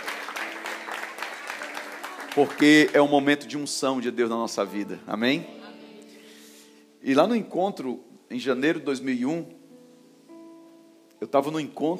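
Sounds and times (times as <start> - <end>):
audience applause: 0.0 - 3.4
speech: 2.4 - 5.6, 7.0 - 9.6, 11.2 - 11.9.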